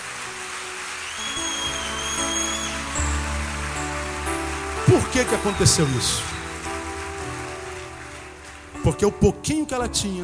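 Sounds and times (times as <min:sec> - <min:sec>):
thin high whistles: 0:00.0 - 0:08.7
audience applause: 0:00.0 - 0:09.2
sustained keyboard chords: 0:00.0 - 0:10.2
speech: 0:05.2 - 0:06.4, 0:08.9 - 0:10.2.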